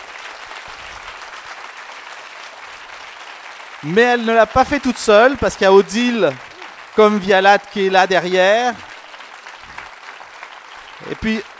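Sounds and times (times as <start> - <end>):
audience applause: 0.0 - 11.5
speech: 3.8 - 8.9, 11.0 - 11.5.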